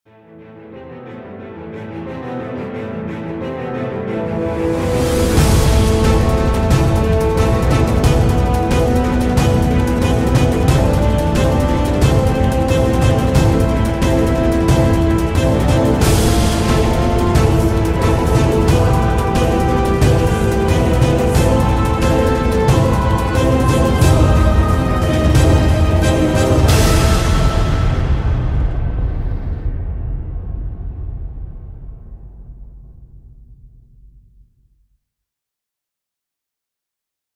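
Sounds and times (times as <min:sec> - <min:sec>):
epic battle music: 0:01.2 - 0:30.9.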